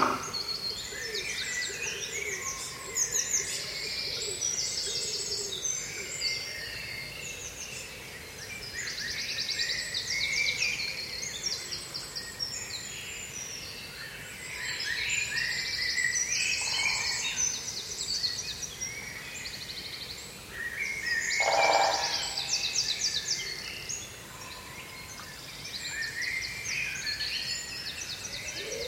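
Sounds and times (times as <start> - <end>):
small brook hissing: 0.0 - 0.7
birds chirping and trilling in a British woodland on a spring morning: 0.0 - 28.8
rustle: 0.0 - 28.8.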